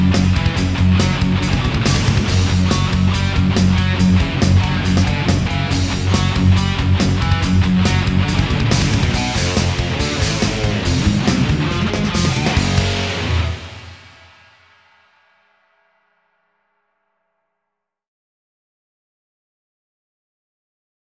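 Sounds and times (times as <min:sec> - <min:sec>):
distorted guitar through GT-8 effects processor: 0:00.0 - 0:16.6.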